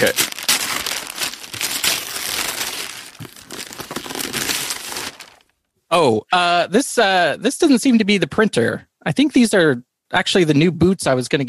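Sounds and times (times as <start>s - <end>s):
speech: 0.0s - 0.3s, 5.9s - 11.4s
wrapping paper crinkling and tearing as a present is unwrapped: 0.0s - 5.5s.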